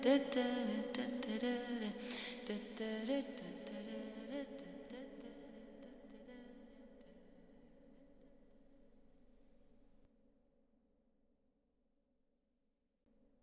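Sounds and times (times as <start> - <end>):
ambient vocals: 0.0 - 8.0.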